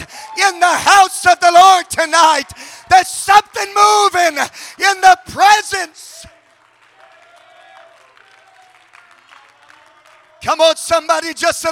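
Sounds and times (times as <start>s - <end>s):
speech: 0.5s - 6.1s, 10.4s - 11.6s
audience clapping: 6.3s - 10.6s.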